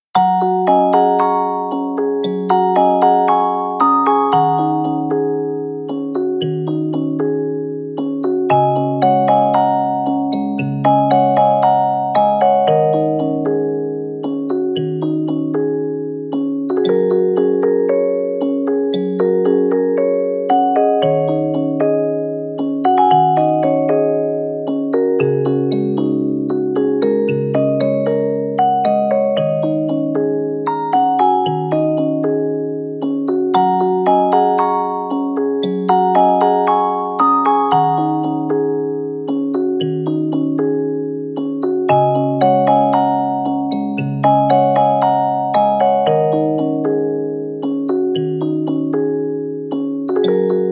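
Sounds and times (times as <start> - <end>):
music box: 0.2 - 50.7.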